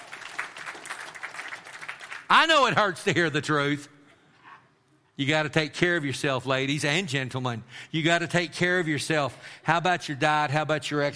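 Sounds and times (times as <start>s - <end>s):
audience hand clapping: 0.0s - 2.4s
speech: 2.3s - 3.9s, 5.2s - 11.1s.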